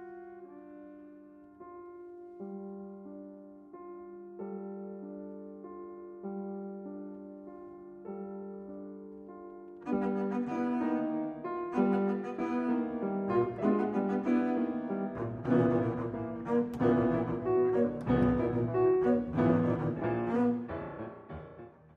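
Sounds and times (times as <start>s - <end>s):
piano: 0.0s - 21.9s
double bass: 15.2s - 20.8s.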